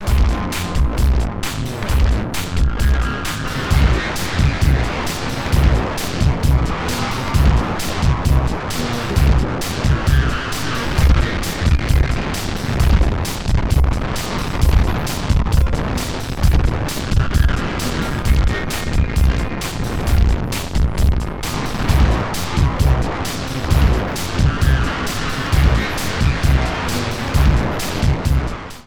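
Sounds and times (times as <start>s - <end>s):
Erica Fusion Plasma Drive processed track: 0.0s - 28.8s.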